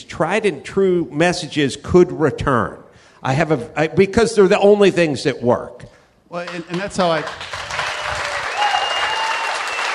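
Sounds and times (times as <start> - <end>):
speech: 0.1 - 7.5
audience clapping: 6.4 - 9.9.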